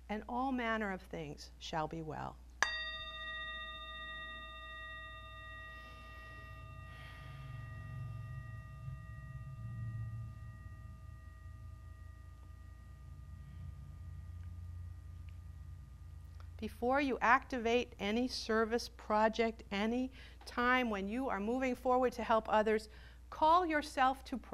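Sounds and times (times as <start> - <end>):
speech: 0.1 - 2.4, 16.6 - 24.5
bell ringing: 2.6 - 16.4.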